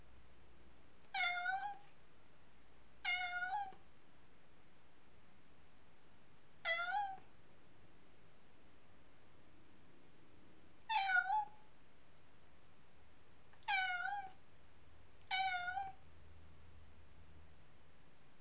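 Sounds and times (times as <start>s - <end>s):
domestic cat meowing: 1.1s - 1.8s, 3.0s - 3.8s, 6.7s - 7.2s, 10.9s - 11.6s, 13.6s - 14.4s, 15.3s - 16.0s.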